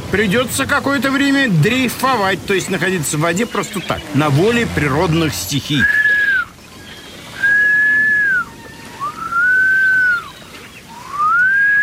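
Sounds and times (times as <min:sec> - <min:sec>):
speech: 0:00.1 - 0:06.0
person whistling to call the wind: 0:05.8 - 0:06.5, 0:07.4 - 0:10.3, 0:10.9 - 0:11.8.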